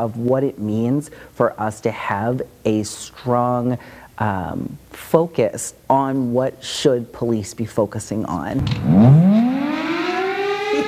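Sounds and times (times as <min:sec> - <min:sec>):
speech: 0:00.0 - 0:09.5
alarm siren: 0:08.6 - 0:10.8.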